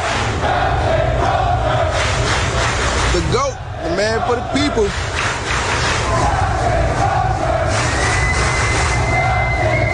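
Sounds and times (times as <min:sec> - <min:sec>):
large crowd of sailors cheering and shouting: 0:00.0 - 0:09.9
speech: 0:04.0 - 0:05.2
faint whistle-like tone: 0:07.7 - 0:09.9.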